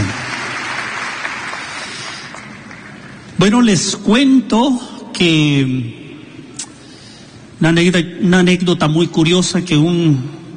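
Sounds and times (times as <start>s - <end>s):
church congregation applauding in praise after a prayer: 0.0s - 3.2s
speech: 3.4s - 6.0s, 7.6s - 10.4s.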